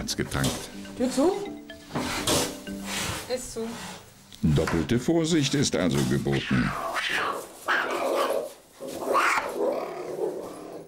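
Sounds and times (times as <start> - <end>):
speech: 0.0 - 2.4, 3.3 - 7.3
cheetah cub growling and snarling: 6.0 - 10.8.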